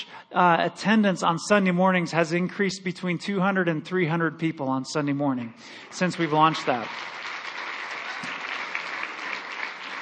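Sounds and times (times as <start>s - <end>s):
speech: 0.0s - 7.2s
audience hand clapping: 5.8s - 10.0s.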